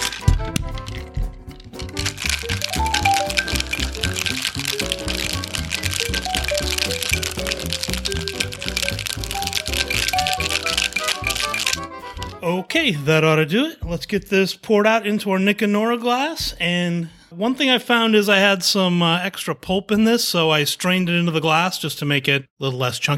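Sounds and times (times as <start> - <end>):
cocktail shaker with ice being shaken: 0.0 - 12.4
speech: 12.8 - 23.1.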